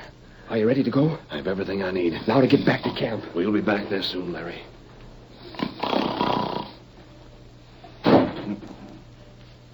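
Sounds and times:
speech: 0.5s - 4.7s
door slammed shut by the wind: 8.0s - 8.8s.

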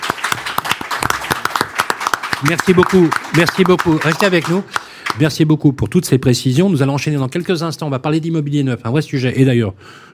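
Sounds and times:
audience applause: 0.0s - 5.3s
speech: 2.4s - 10.1s.

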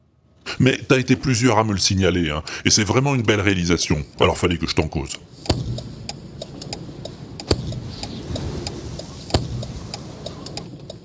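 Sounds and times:
low rumble: 0.5s - 11.0s
speech: 0.6s - 5.7s
car hazard warning lights ticking: 5.4s - 11.0s.

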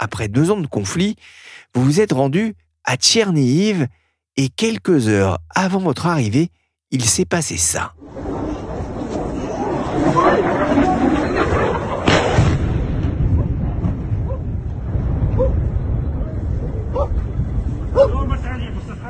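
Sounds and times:
speech: 0.0s - 8.4s
missile exploding near people at bus stop: 8.0s - 18.0s.

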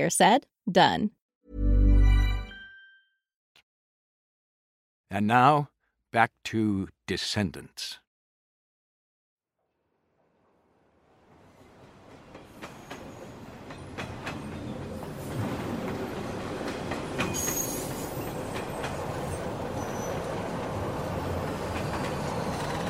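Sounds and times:
speech: 0.0s - 1.6s, 5.1s - 8.0s
train arriving at a station: 10.5s - 22.8s.

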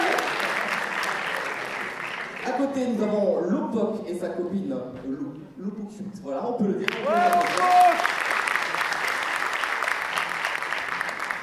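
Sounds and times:
audience applause: 0.0s - 2.5s, 6.9s - 11.4s
speech: 2.5s - 8.0s.

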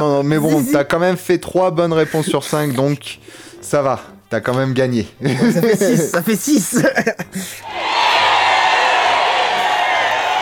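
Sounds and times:
speech: 0.0s - 7.9s
laughter: 0.3s - 0.9s, 5.2s - 7.6s
crowd cheering sound effect after a quiz win: 7.6s - 10.4s.

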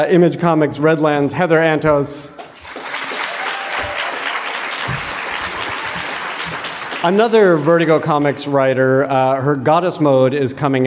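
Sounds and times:
speech: 0.0s - 2.4s, 7.0s - 10.8s
audience applause at a comics panel: 2.5s - 8.5s.

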